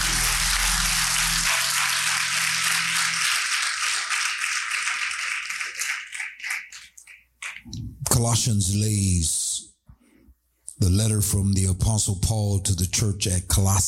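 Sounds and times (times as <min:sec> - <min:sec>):
low sustained tone: 0:00.0 - 0:03.2
audience clapping hands: 0:00.0 - 0:07.7
speech: 0:08.2 - 0:09.4, 0:10.8 - 0:13.8.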